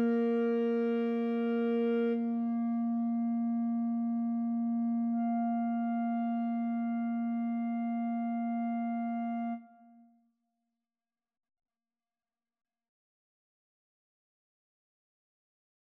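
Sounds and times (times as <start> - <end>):
clarinet trio playing a pavane: 0.0 - 9.7.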